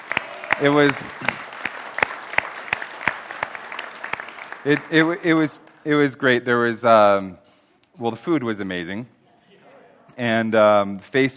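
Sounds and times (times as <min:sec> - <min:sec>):
audience applause: 0:00.0 - 0:05.9
speech: 0:00.6 - 0:01.4, 0:04.6 - 0:07.4, 0:08.0 - 0:09.2, 0:10.2 - 0:11.3.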